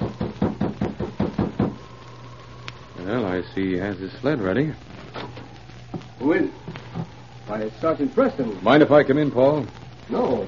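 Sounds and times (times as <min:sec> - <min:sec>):
knocking on a cabin door: 0:00.0 - 0:01.8
speech: 0:03.1 - 0:04.9, 0:06.2 - 0:06.6, 0:07.5 - 0:10.4.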